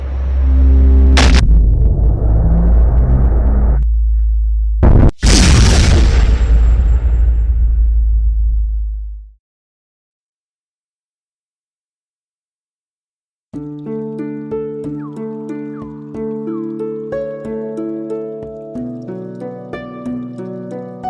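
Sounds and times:
Earth exploding sound effect in an audio drama: 0.1 - 9.3.

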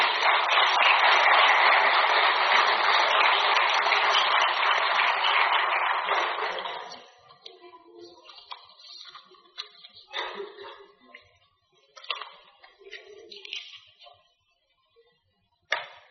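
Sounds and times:
church congregation applause during a sermon: 0.0 - 7.2.

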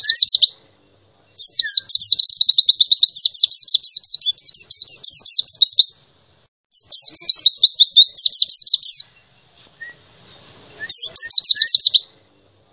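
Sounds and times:
white-eye song of very high rapid chirped notes: 1.3 - 6.0, 6.7 - 12.2.

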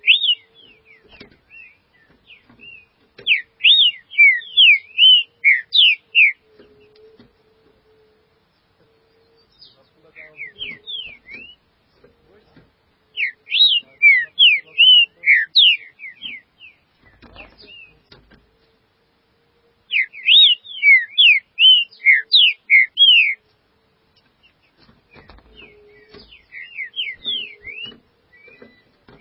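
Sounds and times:
green-winged saltator song of slurred whistles: 0.0 - 7.0, 9.0 - 11.7, 13.1 - 18.1, 19.8 - 23.4, 24.4 - 29.2.

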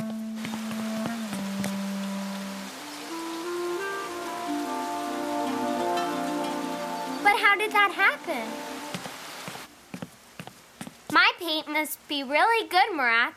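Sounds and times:
heavy rain falling: 0.0 - 9.7
speech: 7.3 - 8.7, 11.4 - 13.3.

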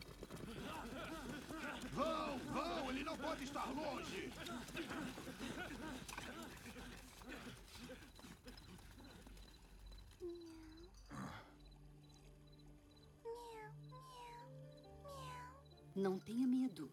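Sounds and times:
laughter: 0.4 - 9.5
speech: 0.9 - 8.0, 16.0 - 16.9
female cat calling with drawn-out meows: 15.0 - 15.6.

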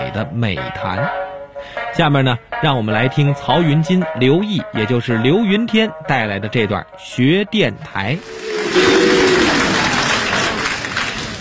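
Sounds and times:
speech: 0.1 - 9.4
audience applause: 8.2 - 11.3.

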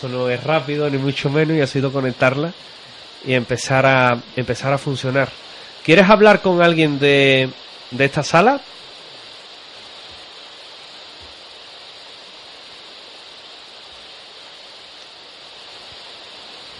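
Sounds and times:
speech: 0.0 - 8.8
white noise from a device: 0.0 - 16.7.

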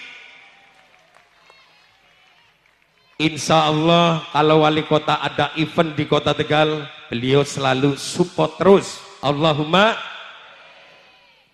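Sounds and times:
audience applause: 0.0 - 3.2
speech: 3.2 - 10.1.

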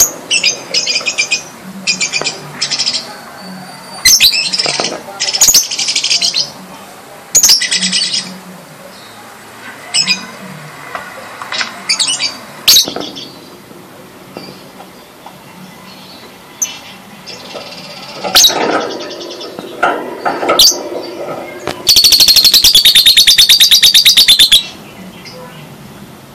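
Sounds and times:
bird chirping: 0.0 - 6.6, 7.4 - 9.2, 11.5 - 13.6, 14.3 - 25.7.

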